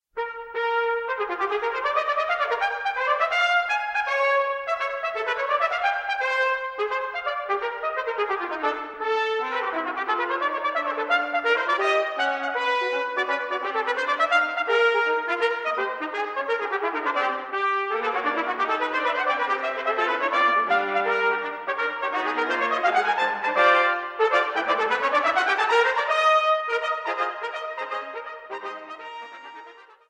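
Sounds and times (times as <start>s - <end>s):
five trumpets playing: 0.2s - 30.0s.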